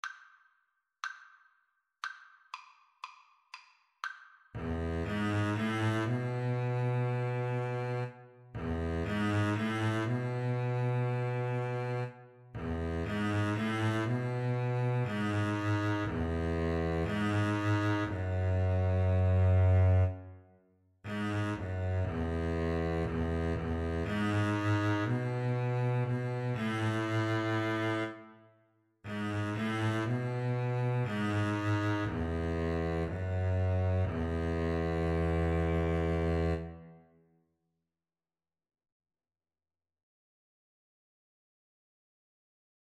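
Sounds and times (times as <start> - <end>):
double bass duet: 4.6 - 20.2, 21.1 - 28.2, 29.1 - 36.8.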